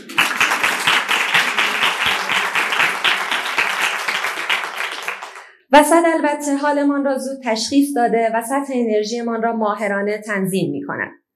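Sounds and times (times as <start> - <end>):
audience applause: 0.0 - 5.5
speech: 5.7 - 11.2.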